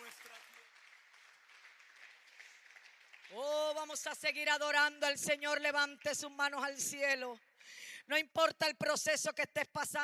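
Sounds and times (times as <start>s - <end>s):
audience applauding: 0.0s - 4.0s
speech: 3.3s - 10.0s.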